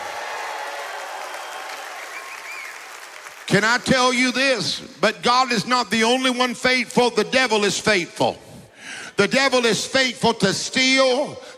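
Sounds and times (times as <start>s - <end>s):
audience applause: 0.0s - 3.9s
whistle or whoop: 1.2s - 2.8s
speech: 3.5s - 8.4s, 9.2s - 11.5s.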